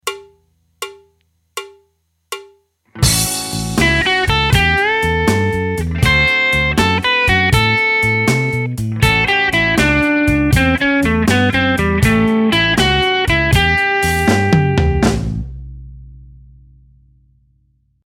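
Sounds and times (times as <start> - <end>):
blues music: 2.9 - 15.8.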